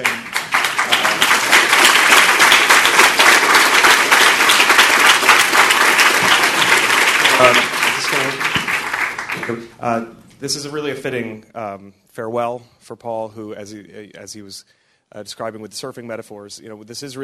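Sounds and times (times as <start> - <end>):
crowd applause: 0.0 - 9.8
speech: 7.4 - 7.8, 9.5 - 17.2.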